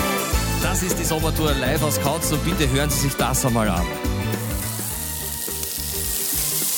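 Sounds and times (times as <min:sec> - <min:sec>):
speech: 0:00.6 - 0:04.2
pork chops sizzling on a grill: 0:04.2 - 0:06.7.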